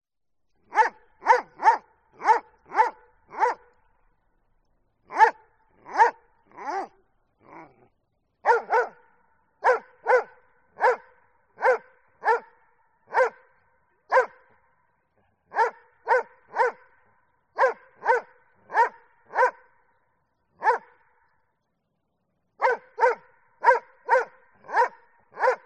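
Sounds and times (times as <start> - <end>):
Dobermann barking deeply: 0.6 - 3.8, 5.0 - 13.5, 14.1 - 14.6, 15.4 - 17.0, 17.6 - 19.7, 20.6 - 21.1, 22.6 - 25.6.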